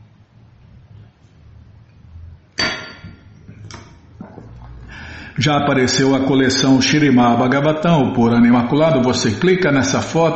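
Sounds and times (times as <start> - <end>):
low steady hum: 0.0 - 10.3
sharp glassy knocks of a drinking glass being handled: 2.6 - 3.3
soft glass clinks: 2.6 - 3.4
speech: 5.4 - 10.3.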